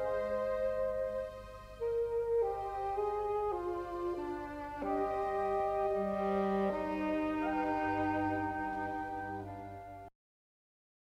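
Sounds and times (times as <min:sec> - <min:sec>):
saxophone solo: 0:00.0 - 0:10.1.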